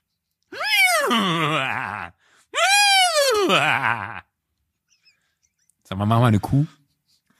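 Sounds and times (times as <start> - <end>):
person imitating a horse's whinnying laugh: 0.5 - 4.3
speech: 5.9 - 6.8.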